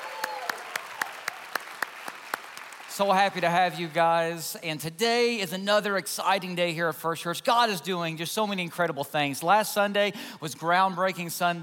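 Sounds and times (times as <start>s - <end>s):
church audience at First Church applauding: 0.0s - 3.8s
speech: 3.0s - 11.6s.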